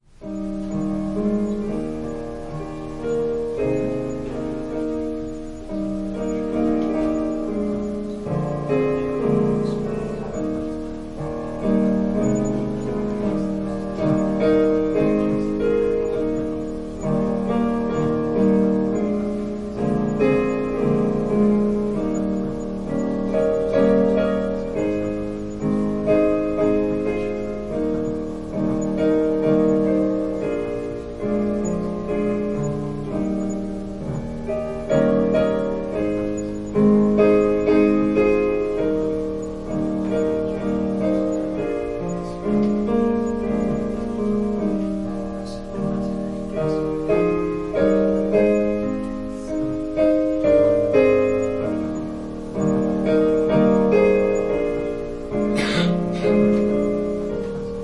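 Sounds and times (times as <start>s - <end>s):
piano prelude: 0.0s - 57.8s.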